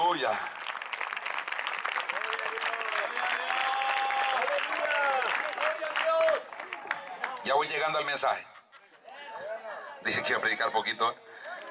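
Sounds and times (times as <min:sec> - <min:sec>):
audience applauding: 0:00.1 - 0:07.6
speech: 0:00.2 - 0:00.6, 0:07.4 - 0:08.5, 0:10.0 - 0:11.2
voices calling out and cheering: 0:01.1 - 0:07.6.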